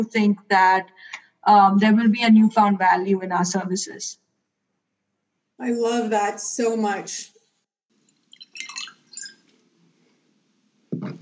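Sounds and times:
speech: 0:00.0 - 0:04.2, 0:05.6 - 0:07.3
wine being poured into a glass: 0:08.1 - 0:09.5.

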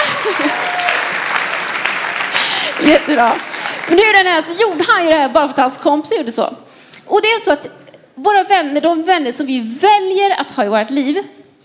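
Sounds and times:
laughter: 0:00.0 - 0:00.9
audience applause: 0:00.0 - 0:04.8
speech: 0:02.8 - 0:11.4.

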